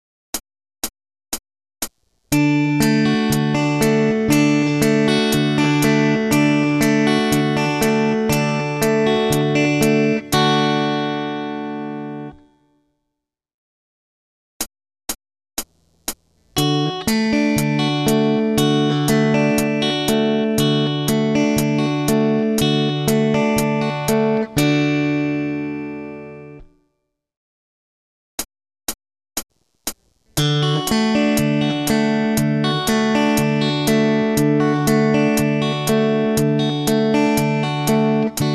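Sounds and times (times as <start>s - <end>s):
rhythm guitar: 2.3s - 12.5s, 15.6s - 26.7s, 29.4s - 38.5s.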